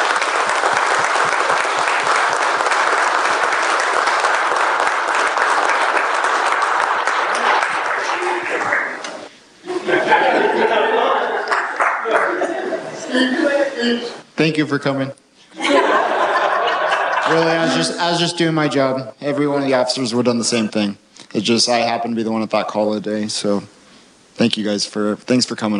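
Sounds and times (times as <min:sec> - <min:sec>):
audience applause: 0:00.0 - 0:09.3
laughter: 0:06.8 - 0:13.8, 0:15.5 - 0:18.0
speech: 0:14.4 - 0:15.2, 0:17.3 - 0:23.8, 0:24.4 - 0:25.7.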